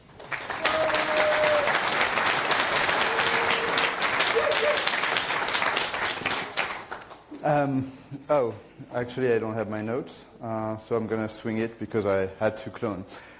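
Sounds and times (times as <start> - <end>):
audience applause: 0.0 - 7.3
speech: 7.5 - 13.3.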